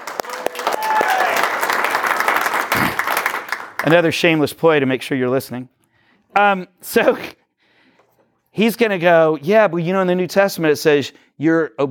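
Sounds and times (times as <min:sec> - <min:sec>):
round of applause: 0:00.0 - 0:04.2
speech: 0:03.8 - 0:07.4, 0:08.6 - 0:11.8.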